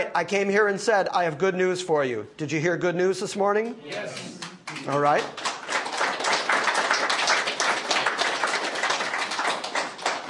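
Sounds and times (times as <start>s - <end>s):
speech: 0.1s - 5.5s
applause: 4.2s - 10.2s.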